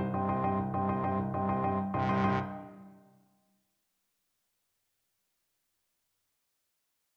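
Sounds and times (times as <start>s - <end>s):
trombone: 0.2s - 2.9s.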